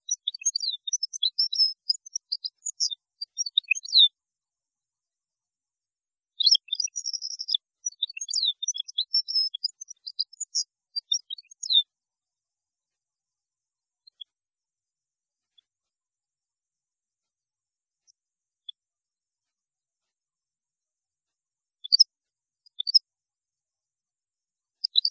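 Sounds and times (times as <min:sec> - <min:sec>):
European goldfinch song: 0:00.0 - 0:04.2, 0:06.4 - 0:11.9, 0:21.8 - 0:22.1, 0:22.7 - 0:23.0, 0:24.8 - 0:25.0.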